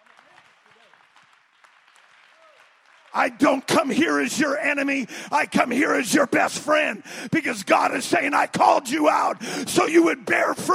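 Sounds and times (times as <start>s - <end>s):
audience clapping hands: 0.0s - 5.6s
speech: 3.1s - 10.7s.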